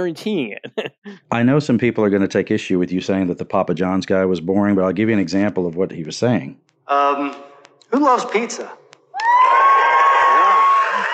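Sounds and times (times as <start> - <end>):
speech: 0.0 - 8.8
crowd cheering and applauding: 9.1 - 11.1.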